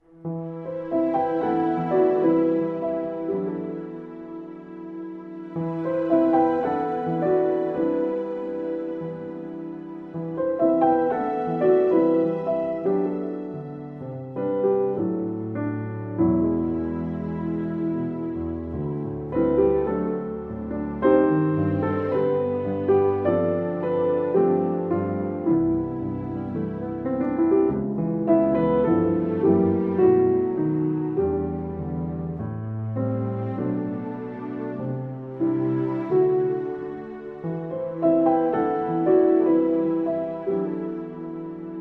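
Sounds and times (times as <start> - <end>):
strings: 0.0 - 41.7.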